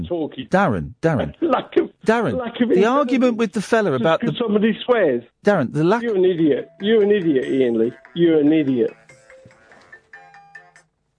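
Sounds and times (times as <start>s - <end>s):
speech: 0.0s - 9.0s
phone alarm melody: 6.0s - 10.9s.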